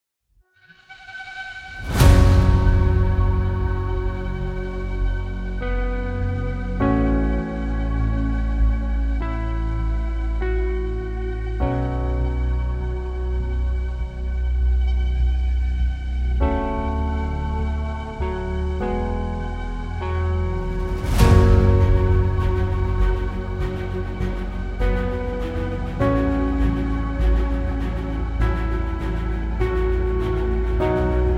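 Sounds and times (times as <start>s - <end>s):
epic hybrid orchestral trailer music: 0.7s - 31.3s.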